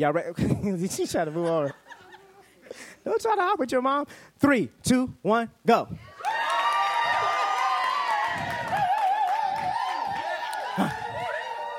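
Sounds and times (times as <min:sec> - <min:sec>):
speech: 0:00.0 - 0:01.9, 0:02.7 - 0:06.4
laughter: 0:00.9 - 0:02.8
crowd shouting and cheering in celebration: 0:06.0 - 0:11.7.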